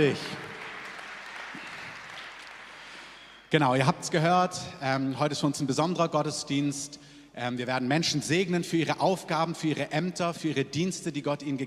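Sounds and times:
speech: 0.0 - 0.4, 3.5 - 11.6
audience applause: 0.0 - 3.5.

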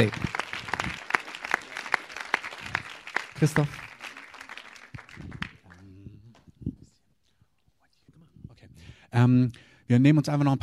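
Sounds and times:
speech: 0.0 - 0.2, 3.4 - 3.8, 9.2 - 10.6
audience applause: 0.0 - 5.9.

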